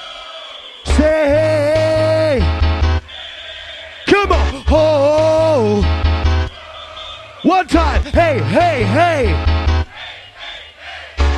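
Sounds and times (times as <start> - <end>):
rave crowd shouting and cheering: 0.0 - 11.3
booming low-end bursts: 0.9 - 3.0, 4.2 - 6.5, 7.7 - 9.9
speech: 7.5 - 9.6.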